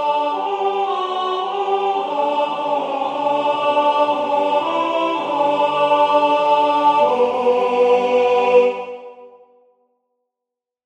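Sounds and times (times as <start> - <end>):
alto singing sacred music: 0.0 - 9.5.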